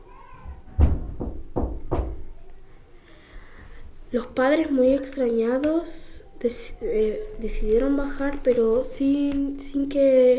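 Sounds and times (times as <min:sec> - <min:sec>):
knocking on a door: 0:00.5 - 0:02.3
speech: 0:04.1 - 0:10.3.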